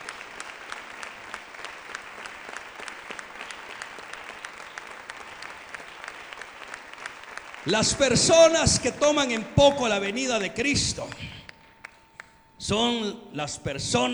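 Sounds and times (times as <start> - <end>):
audience applause: 0.0 - 9.3
speech: 7.6 - 11.3, 12.7 - 14.1.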